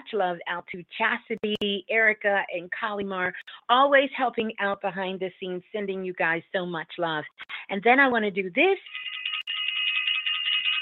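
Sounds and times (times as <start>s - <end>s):
speech: 0.1s - 9.2s
shrill rapidly trilling bell: 8.8s - 10.7s.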